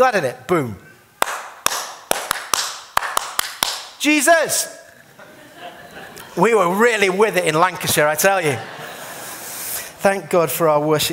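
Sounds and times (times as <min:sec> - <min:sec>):
speech: 0:00.0 - 0:00.8, 0:04.0 - 0:04.8, 0:06.4 - 0:08.8, 0:10.0 - 0:11.1
rhythmic hand clapping: 0:01.2 - 0:04.0
laughter: 0:05.1 - 0:07.1, 0:08.0 - 0:09.7.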